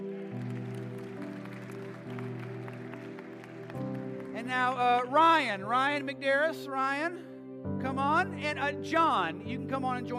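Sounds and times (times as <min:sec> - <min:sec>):
round of applause: 0:00.0 - 0:04.8
speech: 0:04.5 - 0:10.1.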